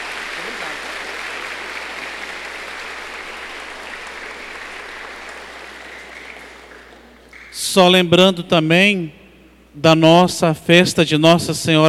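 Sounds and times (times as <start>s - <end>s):
audience applause: 0.0s - 7.5s
speech: 7.7s - 9.2s, 9.8s - 11.8s.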